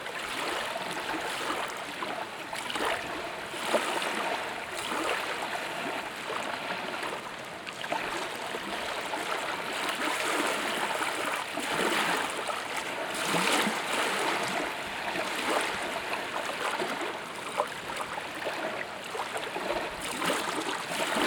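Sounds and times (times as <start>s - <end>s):
water lapping at a boat ramp in Savannah: 0.0s - 21.2s.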